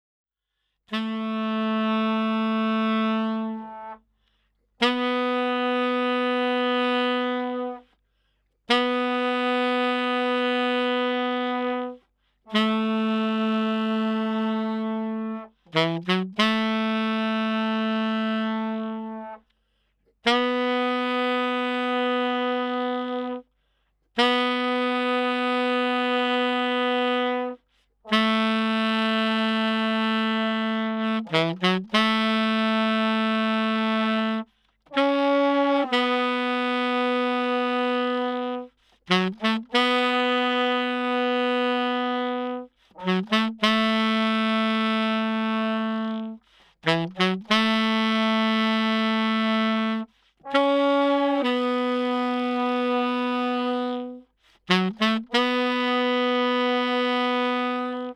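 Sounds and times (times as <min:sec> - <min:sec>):
saxophone: 0:00.5 - 0:58.1.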